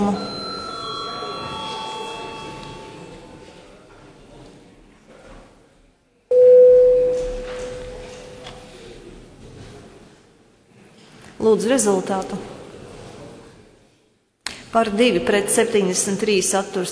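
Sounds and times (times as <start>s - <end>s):
electronic voting bell tone calling a parliamentary vote: 0.0s - 3.6s, 6.3s - 8.4s
speech: 11.5s - 12.5s, 14.8s - 16.9s.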